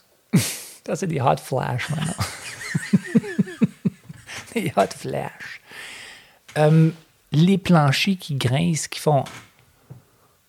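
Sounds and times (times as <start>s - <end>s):
speech: 0.4s - 2.9s, 4.6s - 5.9s, 6.6s - 9.5s
laughter: 1.8s - 5.0s
door closing softly: 2.9s - 5.2s, 6.5s - 7.0s, 9.2s - 9.6s.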